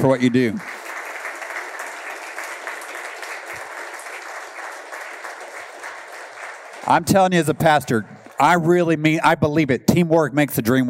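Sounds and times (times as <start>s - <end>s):
speech: 0.0s - 0.7s, 6.9s - 10.8s
crowd applauding: 0.0s - 8.6s.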